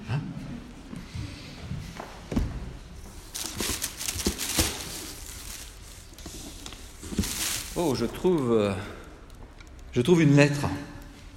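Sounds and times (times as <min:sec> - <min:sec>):
rummaging through a gift package, rustling and crinkling: 0:03.1 - 0:10.0
speech: 0:07.8 - 0:09.0, 0:10.0 - 0:10.9.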